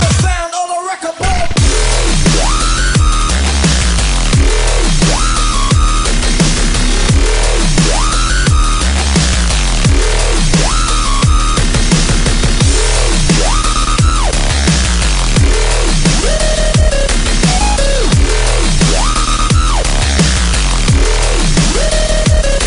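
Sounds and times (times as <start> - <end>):
dubstep music: 0.0 - 22.6.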